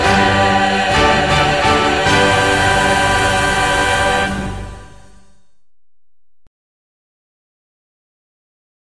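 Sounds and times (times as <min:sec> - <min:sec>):
national anthem with vocals: 0:00.0 - 0:05.3.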